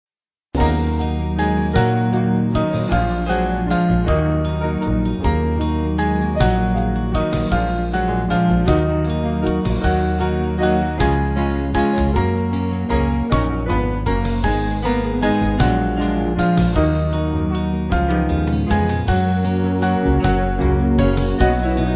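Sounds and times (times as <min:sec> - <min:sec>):
band backing music: 0:00.6 - 0:21.9.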